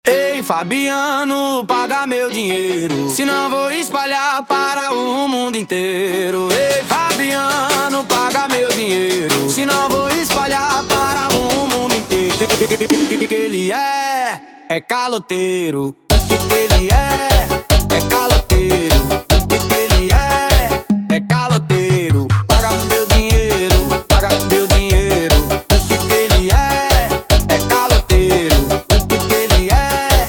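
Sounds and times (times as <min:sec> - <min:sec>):
piseiro remix music: 0:00.0 - 0:30.2.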